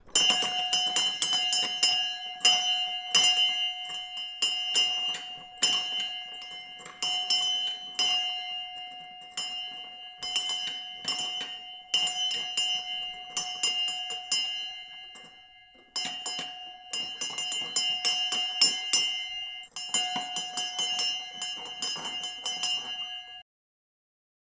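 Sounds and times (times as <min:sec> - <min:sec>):
harbor bell: 0:00.0 - 0:23.4.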